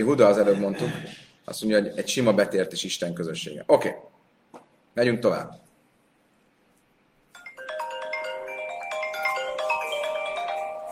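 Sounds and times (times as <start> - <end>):
speech: 0.0 - 4.2, 5.0 - 5.6
phone ringtone for an incoming call: 7.4 - 10.8.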